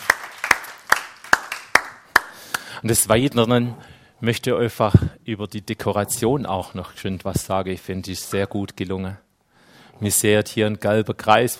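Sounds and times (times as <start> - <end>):
hand claps at a church gathering: 0.0 - 2.7
speech: 2.8 - 9.2, 10.0 - 11.5.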